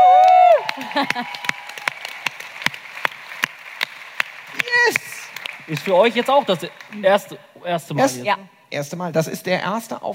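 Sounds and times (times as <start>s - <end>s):
audience applause and cheering: 0.0s - 7.5s
speech: 1.0s - 1.6s, 5.7s - 10.1s.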